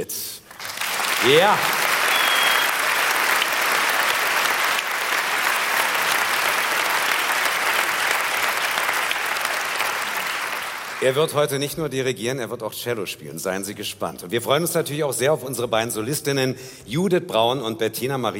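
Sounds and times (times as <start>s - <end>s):
speech: 0.0s - 0.3s, 1.2s - 1.8s, 11.0s - 18.3s
audience applause for orchestra: 0.5s - 11.2s.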